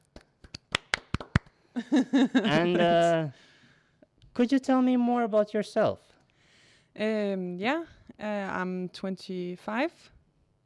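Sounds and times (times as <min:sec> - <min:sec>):
applause: 0:00.2 - 0:01.5
speech: 0:01.8 - 0:03.5, 0:04.4 - 0:06.1, 0:07.0 - 0:10.6.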